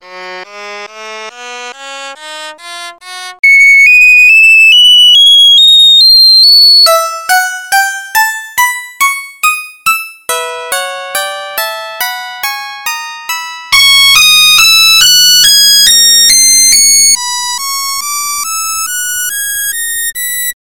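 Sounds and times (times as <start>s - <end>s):
C sharp melodic minor scale: 3.4s - 18.2s.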